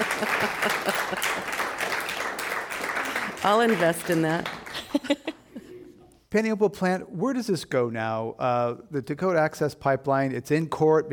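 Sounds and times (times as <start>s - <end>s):
laughter: 0.0s - 1.9s, 4.7s - 6.0s
audience applause: 0.0s - 5.2s
speech: 3.4s - 5.3s, 6.3s - 11.1s.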